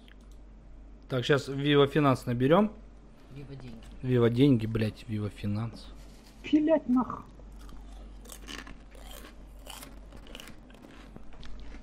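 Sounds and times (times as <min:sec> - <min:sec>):
speech: 0:01.1 - 0:02.8, 0:03.4 - 0:07.3
crunching on chips over a phone call: 0:07.6 - 0:11.8.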